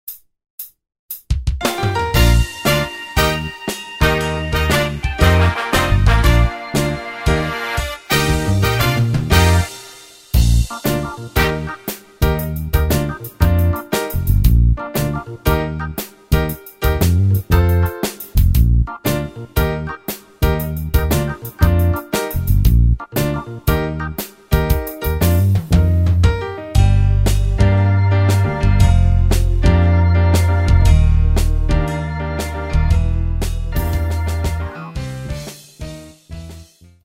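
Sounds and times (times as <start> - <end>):
instrumental backing track in B flat: 0.1 - 37.0.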